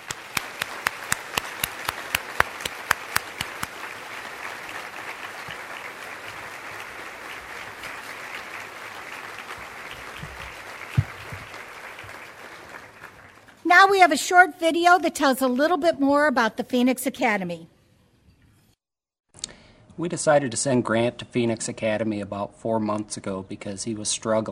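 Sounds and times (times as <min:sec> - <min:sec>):
crowd applauding: 0:00.0 - 0:13.6
speech: 0:13.7 - 0:17.7, 0:20.0 - 0:24.5.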